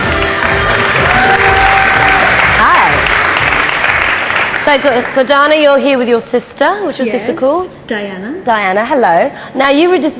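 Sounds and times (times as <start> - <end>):
audience applause: 0.0 - 5.3
speech: 4.7 - 10.1.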